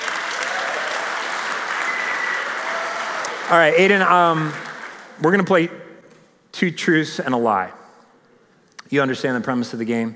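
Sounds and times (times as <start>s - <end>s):
audience applause during a sermon: 0.0s - 5.2s
speech: 3.5s - 4.6s, 5.2s - 5.8s, 6.6s - 7.8s, 8.9s - 10.1s.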